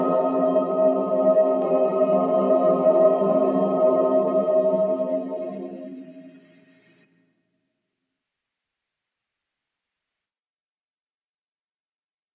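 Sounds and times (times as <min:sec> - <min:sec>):
choir singing a cappella psalm: 0:00.0 - 0:06.5.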